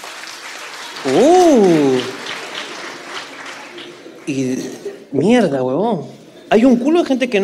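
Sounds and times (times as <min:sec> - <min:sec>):
crowd clapping: 0:00.0 - 0:05.0
speech: 0:01.0 - 0:02.0, 0:04.3 - 0:07.4
person whooping: 0:01.0 - 0:02.2.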